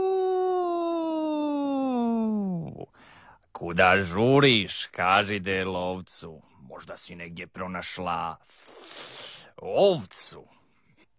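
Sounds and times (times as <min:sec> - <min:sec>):
voice imitating a wolf howling in a children's story: 0:00.0 - 0:02.8
speech: 0:03.6 - 0:09.0, 0:09.6 - 0:10.6.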